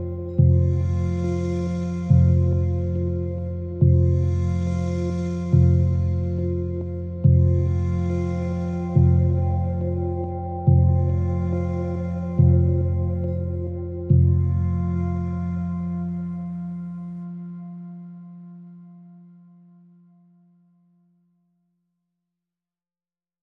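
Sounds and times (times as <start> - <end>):
dark meditation chimes without melody: 0.0 - 18.1.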